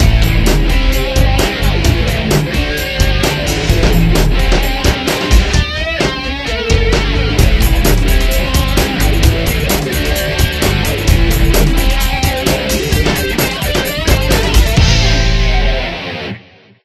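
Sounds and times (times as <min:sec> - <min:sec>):
cheerleaders dance music: 0:00.0 - 0:15.9.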